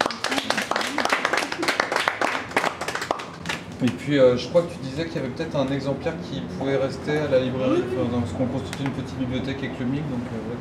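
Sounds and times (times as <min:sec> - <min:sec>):
audience applause: 0:00.0 - 0:03.6
speech: 0:03.8 - 0:10.5.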